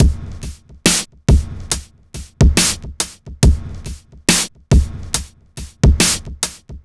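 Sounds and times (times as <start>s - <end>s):
electronica drum loop: 0.0s - 6.8s.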